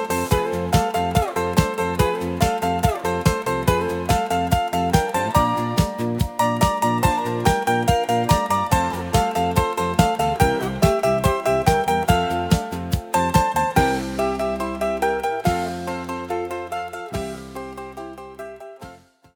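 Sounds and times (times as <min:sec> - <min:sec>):
schlager dance music from a music box: 0:00.0 - 0:17.9.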